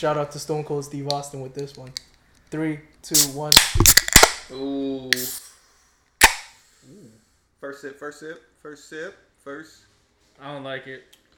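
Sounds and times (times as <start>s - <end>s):
speech: 0.0s - 5.4s, 7.6s - 11.2s
beer cans cracked open: 3.2s - 4.5s, 5.2s - 5.4s, 6.2s - 6.5s.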